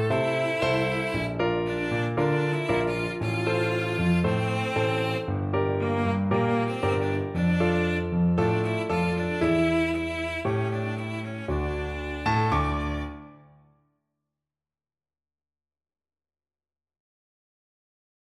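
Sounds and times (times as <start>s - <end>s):
cello duet: 0.0s - 13.4s.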